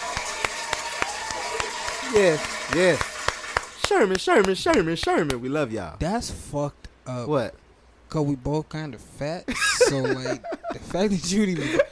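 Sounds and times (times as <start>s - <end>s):
applause: 0.0s - 5.4s
speech: 2.1s - 3.1s, 3.9s - 11.9s.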